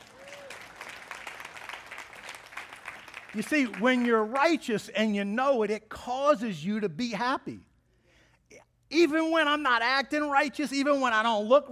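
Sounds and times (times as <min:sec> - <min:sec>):
audience clapping hands: 0:00.0 - 0:04.7
speech: 0:03.3 - 0:07.7, 0:08.9 - 0:11.7.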